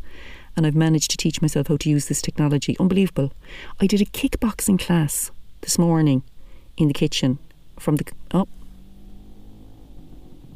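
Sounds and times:
speech: 0.6s - 8.6s
scooter engine buzzing as it speeds up the road: 8.5s - 10.5s.

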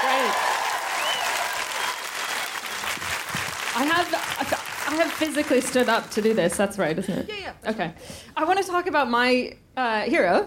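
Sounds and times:
comedy audience applause welcoming a comedian: 0.0s - 6.5s
speech: 4.0s - 10.4s.

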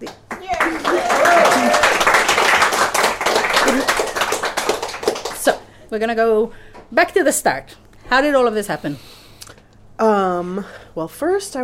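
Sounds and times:
audience applause: 0.0s - 5.6s
speech: 5.9s - 9.1s, 10.0s - 11.6s.

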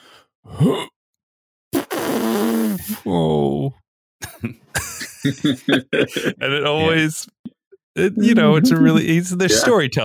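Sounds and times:
speech: 0.5s - 0.9s, 5.2s - 7.4s, 8.0s - 10.0s
person mimicking a fart with their voice: 1.8s - 3.0s
laughter: 4.2s - 7.2s, 8.0s - 9.9s.

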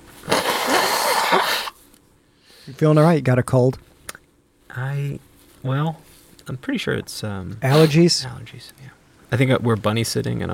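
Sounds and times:
nose blowing: 0.2s - 1.8s
speech: 2.7s - 3.9s, 4.7s - 10.5s.

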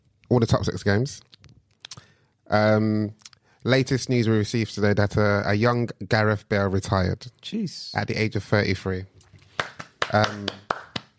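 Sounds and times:
speech: 0.3s - 1.3s, 2.5s - 9.1s, 10.1s - 10.7s
single person clapping: 9.5s - 11.1s.

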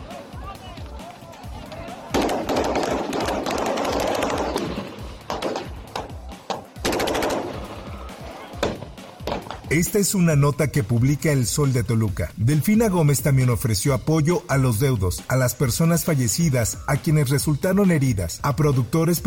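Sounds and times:
people shouting: 0.0s - 6.8s, 7.5s - 9.7s
gunfire during armed confrontation: 2.1s - 9.6s
speech: 9.8s - 19.2s.

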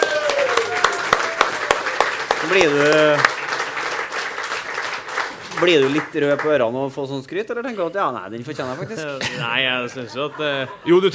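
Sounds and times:
audience applause: 0.0s - 6.7s
speech: 2.5s - 3.4s, 5.6s - 11.1s
laughter: 8.5s - 11.1s.

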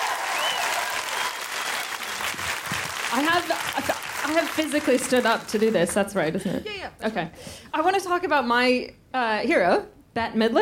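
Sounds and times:
audience applauding to welcome a comedian to the stage: 0.0s - 6.1s
speech: 3.1s - 10.5s.

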